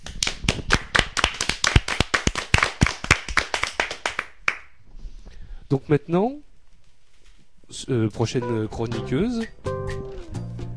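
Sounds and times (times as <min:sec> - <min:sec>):
people clapping: 0:00.0 - 0:04.8
speech: 0:05.7 - 0:06.5, 0:07.7 - 0:09.8.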